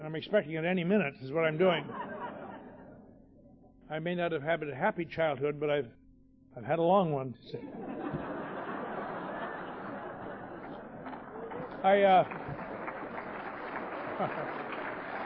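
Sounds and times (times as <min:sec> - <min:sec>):
speech: 0:00.1 - 0:02.2, 0:03.9 - 0:06.0, 0:06.6 - 0:08.0, 0:11.8 - 0:12.5, 0:14.2 - 0:14.6
laughter: 0:01.4 - 0:03.2, 0:07.6 - 0:15.2
audience clapping: 0:08.1 - 0:15.2.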